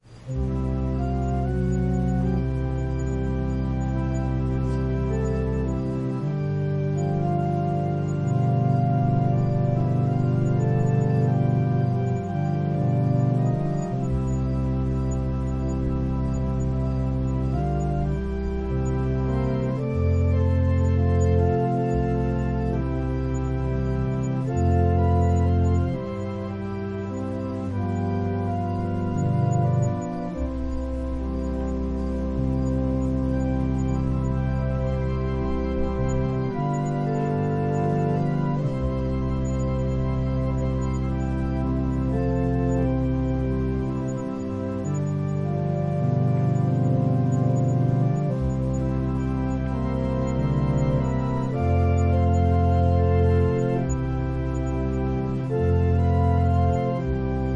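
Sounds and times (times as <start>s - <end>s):
organ prelude: 0.0s - 57.5s.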